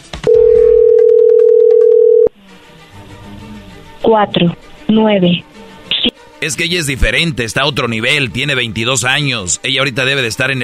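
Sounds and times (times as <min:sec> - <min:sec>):
telephone dial tone while dialing: 0:00.3 - 0:02.3
speech: 0:04.1 - 0:05.5, 0:06.4 - 0:10.6.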